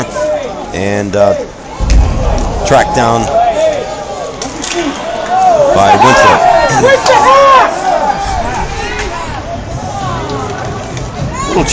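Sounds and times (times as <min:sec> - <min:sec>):
speech: 0:00.7 - 0:01.6, 0:02.3 - 0:03.4, 0:05.6 - 0:07.8, 0:11.6 - 0:11.7
hockey crowd shouting for a penalty: 0:01.5 - 0:11.7.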